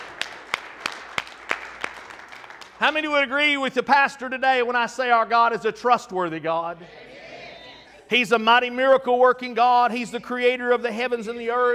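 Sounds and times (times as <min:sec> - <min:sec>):
audience hand clapping: 0:00.0 - 0:03.5
speech: 0:02.8 - 0:07.0, 0:08.1 - 0:11.7.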